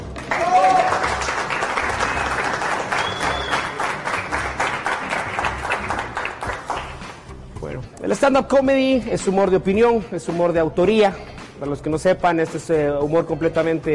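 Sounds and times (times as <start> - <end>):
audience applause: 0.0 - 7.0
speech: 8.1 - 13.9.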